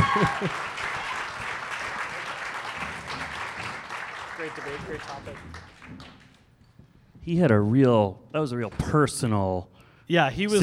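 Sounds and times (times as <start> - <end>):
audience applause: 0.0 - 6.4
speech: 0.2 - 0.7, 4.4 - 6.1, 7.2 - 10.6.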